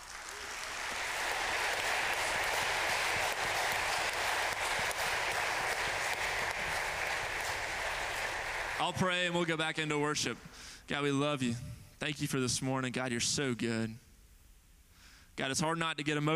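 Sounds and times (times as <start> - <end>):
audience applause at a church service: 0.0 - 9.2
speech: 8.8 - 14.0, 15.4 - 16.3.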